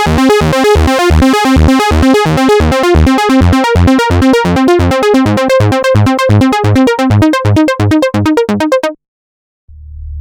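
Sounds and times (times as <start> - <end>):
Moog Source synthesizer: 0.0 - 9.0.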